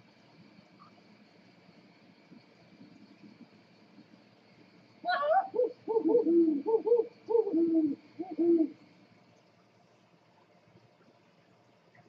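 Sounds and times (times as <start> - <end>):
scops owl hooting: 5.0 - 8.8.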